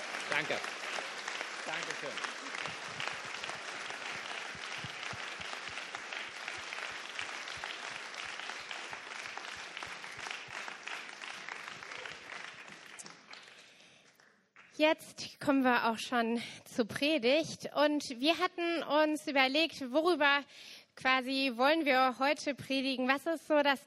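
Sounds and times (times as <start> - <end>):
audience applause: 0.0 - 14.7
speech: 0.3 - 3.3, 14.8 - 23.8.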